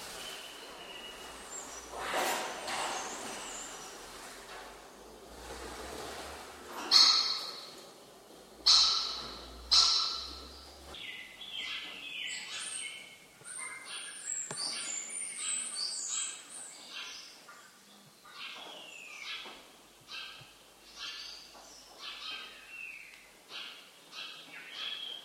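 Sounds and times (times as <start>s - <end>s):
birds chirping in an abandoned warehouse: 0.0s - 5.4s, 6.7s - 25.2s.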